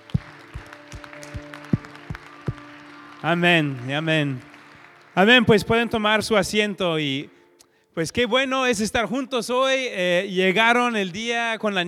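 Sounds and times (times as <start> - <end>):
rhythmic audience clapping: 0.0 - 6.7
sustained musical tone: 0.0 - 7.6
speech: 3.2 - 4.5, 5.2 - 7.4, 8.0 - 11.8.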